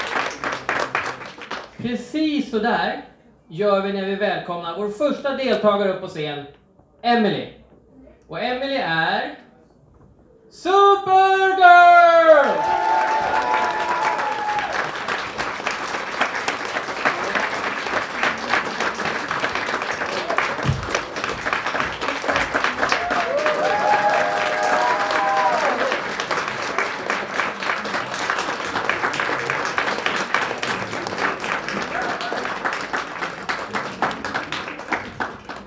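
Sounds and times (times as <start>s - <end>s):
audience applause: 0.0s - 1.8s, 12.4s - 35.6s
speech: 1.8s - 7.6s, 8.3s - 9.4s, 10.5s - 13.8s
whistles and cheers: 12.4s - 14.8s, 23.0s - 26.0s.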